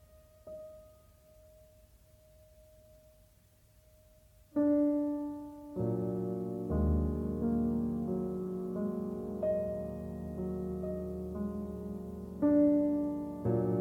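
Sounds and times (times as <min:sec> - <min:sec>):
melancholy music: 0:04.6 - 0:13.7.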